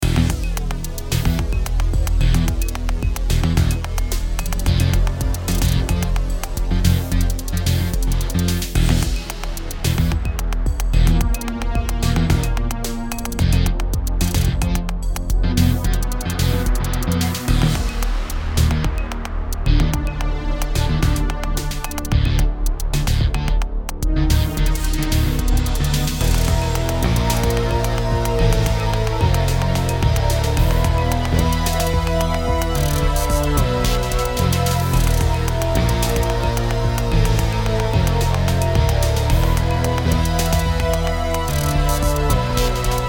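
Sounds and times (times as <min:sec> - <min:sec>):
game stage music: 0:00.0 - 0:43.0.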